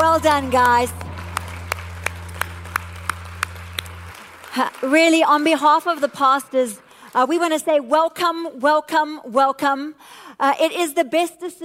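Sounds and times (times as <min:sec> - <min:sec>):
audience applause: 0:00.0 - 0:07.2
speech: 0:00.2 - 0:01.1, 0:04.6 - 0:11.6.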